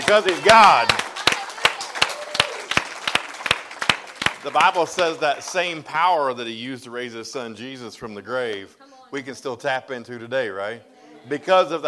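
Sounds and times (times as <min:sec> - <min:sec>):
audience applause: 0:00.0 - 0:05.9
speech: 0:00.1 - 0:01.0, 0:04.4 - 0:11.8.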